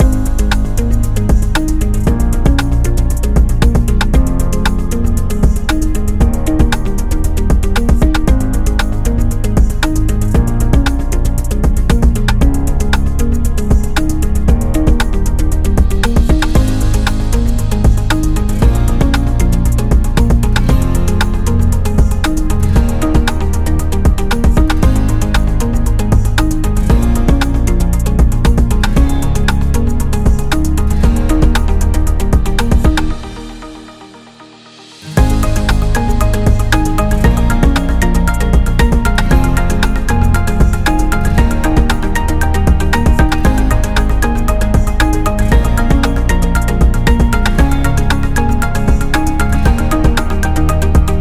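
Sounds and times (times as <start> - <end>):
corporate promo music loop: 0.0 - 51.1.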